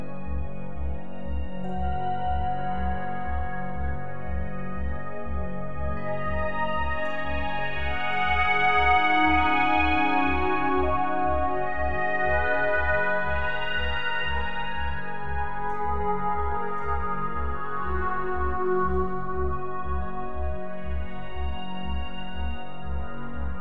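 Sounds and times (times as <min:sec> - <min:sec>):
meditation music for sleep: 0:00.0 - 0:23.5.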